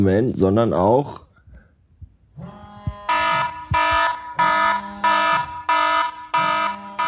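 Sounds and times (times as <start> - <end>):
speech: 0.0 - 1.2
phone vibrating against a metal radiator: 2.3 - 7.0
phone ringtone: 3.1 - 7.0.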